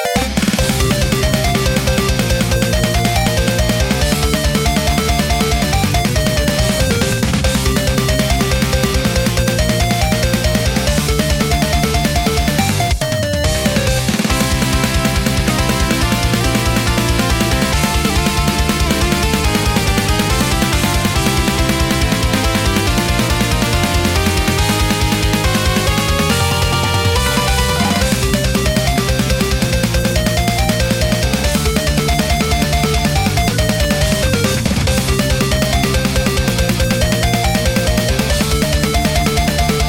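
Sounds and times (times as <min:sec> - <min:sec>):
metal shred guitar: 0:00.2 - 0:39.8.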